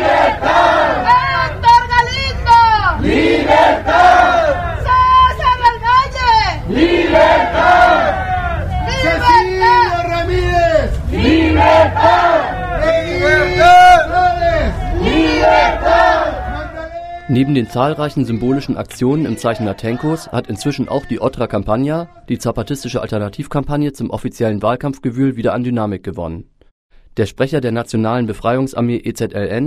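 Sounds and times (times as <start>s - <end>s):
protesters chanting for freedom for political prisoners: 0.0s - 17.6s
speech: 17.4s - 26.5s, 27.2s - 29.6s.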